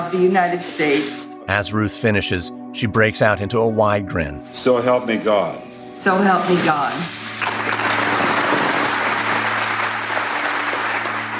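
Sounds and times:
speech: 0.0s - 7.2s
crowd applause: 7.4s - 11.3s.

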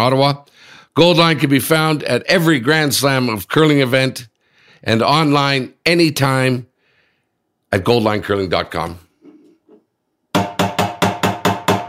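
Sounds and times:
speech: 0.0s - 6.7s, 7.7s - 9.0s
knocking with a stick: 10.3s - 11.8s.

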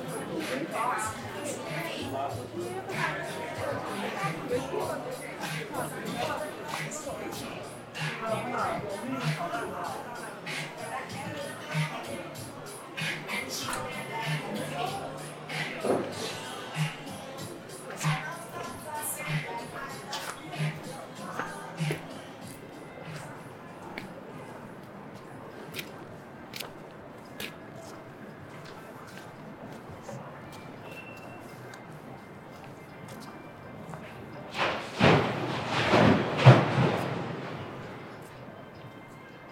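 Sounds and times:
murmur of many voices in an Apple store in Sanlitun, Beijing: 0.0s - 39.5s.

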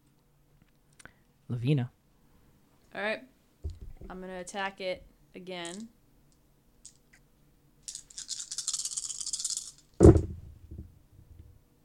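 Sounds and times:
speech: 1.5s - 2.0s, 3.0s - 3.3s, 4.1s - 6.0s
dice rattling in a hand or cup and tumbling: 5.6s - 5.9s, 7.8s - 10.2s.

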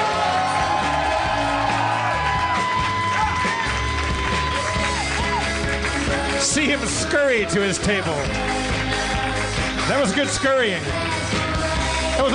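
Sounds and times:
audience cheering: 0.0s - 7.3s
audience applauding: 0.0s - 12.3s
speech: 6.6s - 8.6s, 9.9s - 11.2s.

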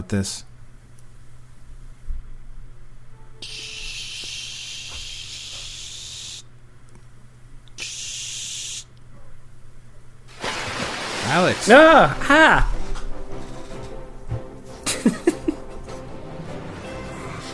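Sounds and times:
speech: 0.0s - 0.5s, 11.3s - 12.7s
low constant hum: 0.0s - 16.4s
water poured onto a bed: 10.3s - 12.2s
laughter: 14.8s - 15.7s.

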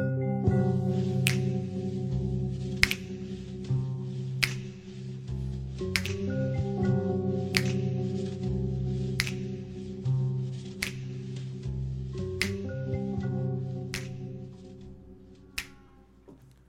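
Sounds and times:
steady music intro: 0.0s - 15.6s
finger snaps: 1.2s - 1.9s, 2.8s - 3.3s, 4.4s - 5.0s, 5.8s - 6.8s, 7.4s - 10.0s, 10.7s - 11.5s, 12.4s - 14.9s, 15.6s - 16.0s.

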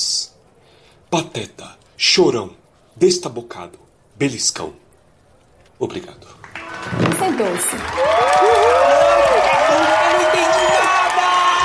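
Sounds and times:
speech: 1.1s - 4.9s, 5.8s - 10.6s
crowd clapping: 6.3s - 11.6s.

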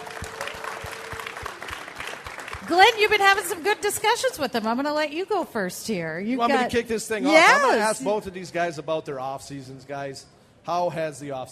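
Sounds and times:
audience applause: 0.0s - 4.0s
speech: 2.7s - 11.5s.

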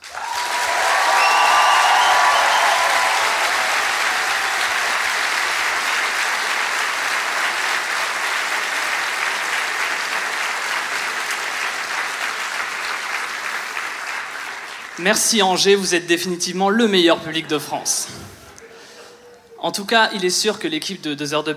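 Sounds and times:
cheers and whistles: 0.0s - 5.2s
audience applause in a concert hall: 0.0s - 15.2s
speech: 15.0s - 18.4s, 19.6s - 21.5s.

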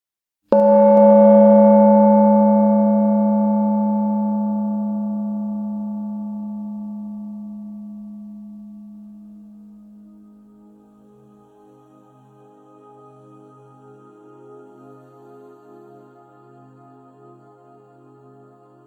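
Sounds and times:
gong ringing: 0.6s - 6.9s.

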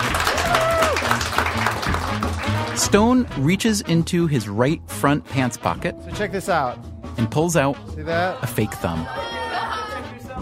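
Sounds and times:
audience applause at a magic show: 0.0s - 2.9s
speech: 2.8s - 9.3s
laughter: 8.4s - 10.2s.

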